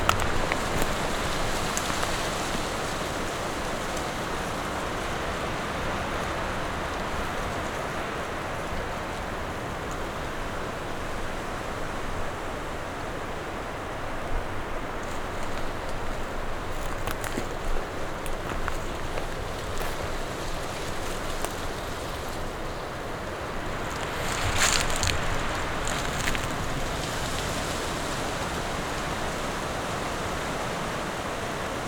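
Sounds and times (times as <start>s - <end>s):
wind through fir, spruce, beech and elm branches: 0.0s - 31.8s.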